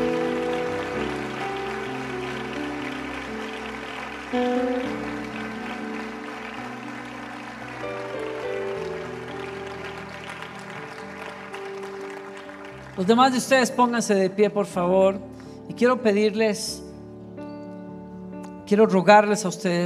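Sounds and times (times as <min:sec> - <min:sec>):
audience applause: 0:00.0 - 0:14.0
speech: 0:04.3 - 0:04.9, 0:13.0 - 0:16.8, 0:18.7 - 0:19.8.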